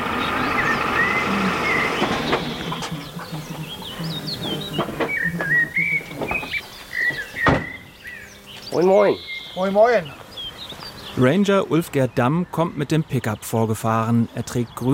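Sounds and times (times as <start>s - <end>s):
flock of geese flying and calling: 0.0s - 10.1s
steady outdoor noise: 0.0s - 14.9s
speech: 8.8s - 10.2s, 11.2s - 14.9s.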